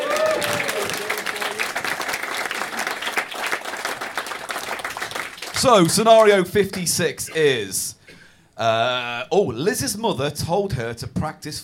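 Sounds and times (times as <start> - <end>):
round of applause: 0.0 - 6.8
speech: 5.6 - 8.0, 8.6 - 11.6.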